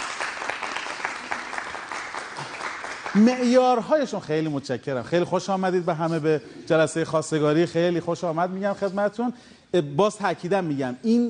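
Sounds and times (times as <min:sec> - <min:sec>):
crowd applauding for the bride at a mock suitors' meeting: 0:00.0 - 0:03.8
speech: 0:03.1 - 0:11.2.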